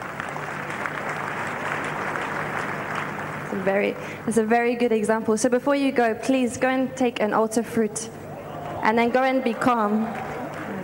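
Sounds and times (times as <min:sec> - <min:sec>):
audience clapping: 0:00.0 - 0:04.0, 0:08.5 - 0:10.8
speech: 0:03.5 - 0:08.2, 0:08.8 - 0:10.2.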